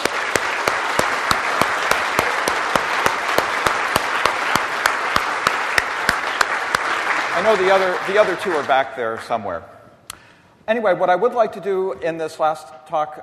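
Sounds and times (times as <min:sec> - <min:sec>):
audience round of applause: 0:00.0 - 0:09.4
speech: 0:07.4 - 0:09.8, 0:10.7 - 0:13.2.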